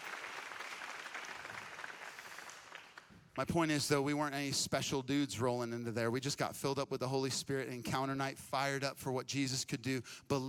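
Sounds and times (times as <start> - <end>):
crowd applauding: 0.0 - 3.3
speech: 3.4 - 10.4.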